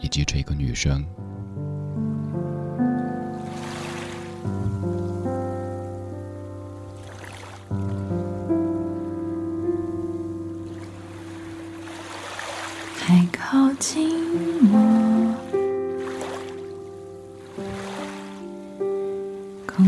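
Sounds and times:
gentle piano-like music: 0.0s - 19.8s
speech: 0.1s - 1.2s, 2.0s - 2.6s
sea waves washing: 3.2s - 6.1s, 6.7s - 8.3s, 10.1s - 19.8s.

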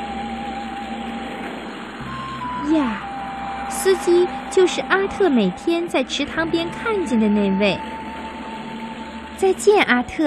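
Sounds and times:
bus engine arriving: 0.0s - 10.2s
speech: 3.8s - 8.0s, 9.4s - 10.2s.

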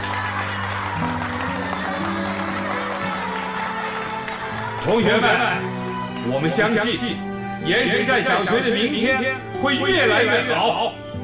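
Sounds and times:
audience applause welcoming teachers: 0.0s - 5.7s
speech: 4.8s - 11.0s.

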